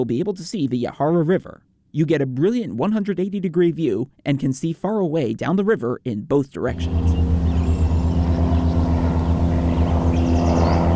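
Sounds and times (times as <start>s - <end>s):
speech: 0.0s - 7.2s
airplane flying overhead: 6.6s - 10.9s.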